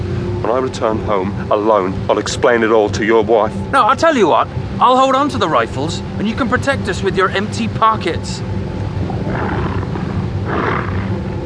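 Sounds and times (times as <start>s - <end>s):
speech: 0.5s - 8.6s
dogs howling: 9.0s - 11.2s.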